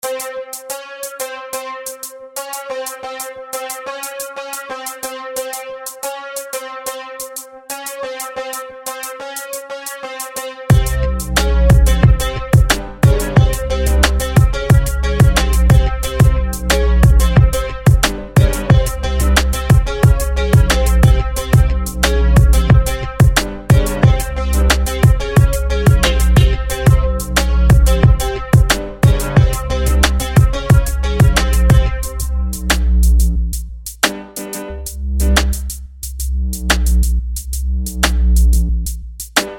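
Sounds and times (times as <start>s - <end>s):
low bass: 10.7s - 34.0s, 34.6s - 39.3s.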